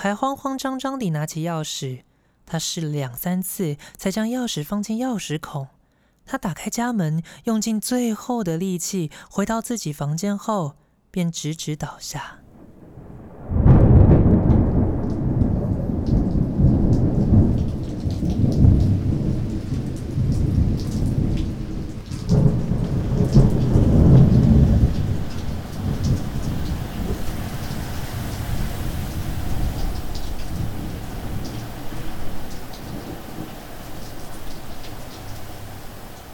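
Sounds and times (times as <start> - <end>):
speech: 0.0 - 12.4
heavy rain: 12.4 - 36.3
thunder rumbling: 12.4 - 36.3.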